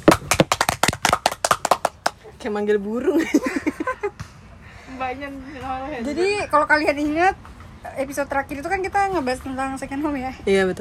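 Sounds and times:
hand clapping applause: 0.0s - 2.2s
speech: 2.4s - 3.6s, 4.9s - 10.7s.

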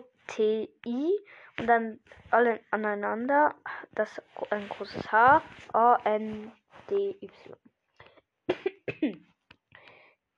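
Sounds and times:
speech: 0.3s - 7.7s, 8.5s - 9.3s
person coughing after choking: 8.5s - 9.3s.

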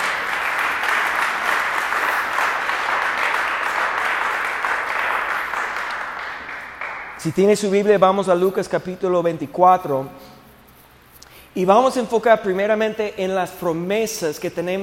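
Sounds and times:
people clapping as offering to the Lord: 0.0s - 7.7s
speech: 7.2s - 10.3s, 11.6s - 14.8s.

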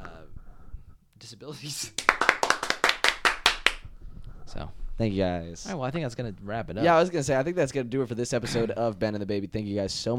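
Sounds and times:
speech: 1.3s - 2.4s, 4.5s - 10.1s
person clapping hands: 1.9s - 3.8s.

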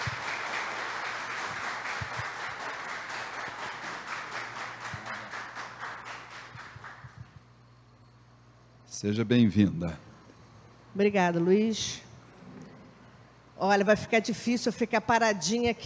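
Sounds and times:
audience applause: 0.0s - 7.2s
speech: 9.0s - 10.1s, 11.0s - 12.0s, 13.6s - 15.8s.

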